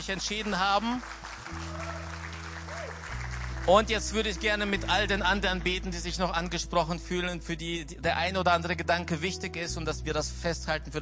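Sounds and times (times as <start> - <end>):
speech: 0.0 - 1.7, 3.7 - 11.0
audience applause: 0.0 - 4.7.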